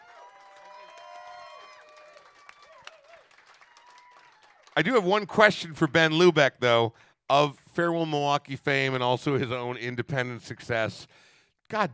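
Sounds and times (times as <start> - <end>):
audience applause in the Mission Room: 0.0 - 5.1
speech: 4.8 - 11.9.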